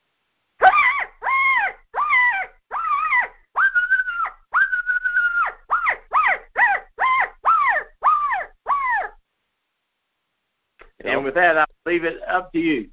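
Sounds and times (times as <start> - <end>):
imitated coyote squall call: 0.6 - 9.2
speech: 11.2 - 12.9.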